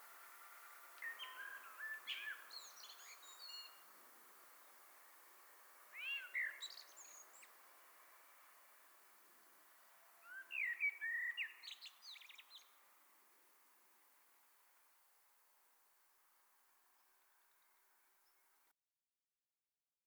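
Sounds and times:
Common blackbird singing: 0:01.0 - 0:03.9, 0:05.9 - 0:07.6, 0:10.2 - 0:12.8.

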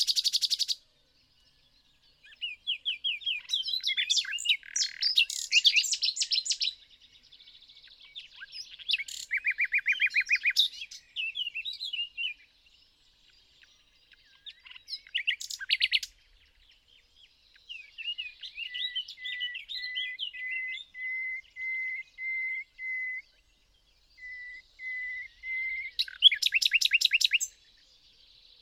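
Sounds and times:
Common nightingale singing: 0:00.0 - 0:28.6.

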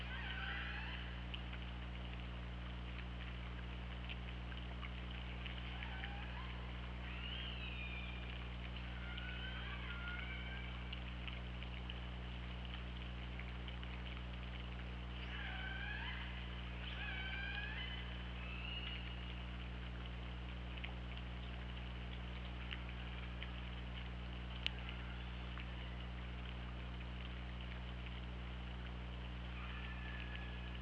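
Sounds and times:
killer whale calls: 0:00.0 - 0:01.2, 0:05.6 - 0:11.0, 0:15.1 - 0:19.5, 0:24.7 - 0:26.1, 0:29.5 - 0:30.7
low hum: 0:00.0 - 0:30.7.

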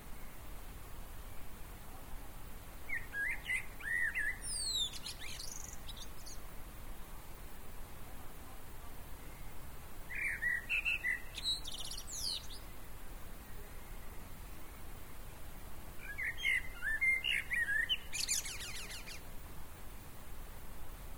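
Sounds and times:
common blackbird singing: 0:02.9 - 0:06.4, 0:10.1 - 0:12.7, 0:16.0 - 0:19.2.

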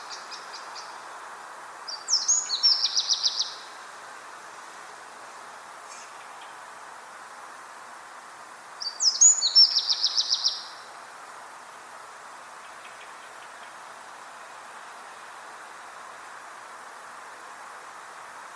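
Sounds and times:
Eurasian wren calling: 0:00.0 - 0:01.3, 0:01.9 - 0:03.9, 0:08.8 - 0:10.9, 0:12.5 - 0:13.8
hiss: 0:00.0 - 0:18.5.

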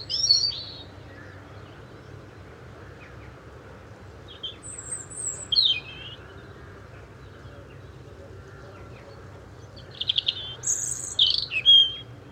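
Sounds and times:
European robin Erithacus rubecula giving twittering phrases: 0:00.0 - 0:01.9, 0:04.3 - 0:06.3, 0:08.8 - 0:12.2.

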